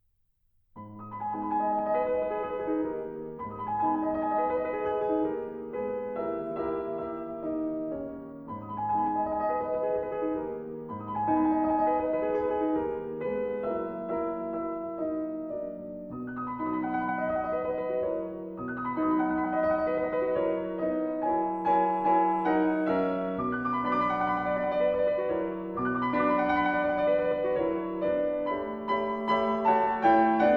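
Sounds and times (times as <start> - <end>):
piano sonata: 0.7 - 30.5.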